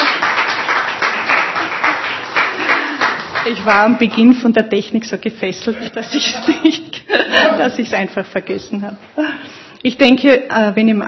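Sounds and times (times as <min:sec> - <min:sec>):
audience applause: 0:00.0 - 0:04.0
speech: 0:03.4 - 0:11.0.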